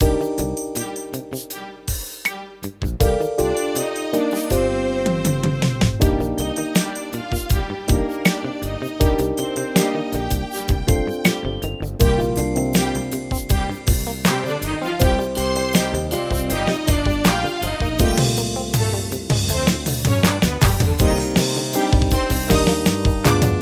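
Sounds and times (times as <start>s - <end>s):
hip hop music: 0.0s - 23.6s.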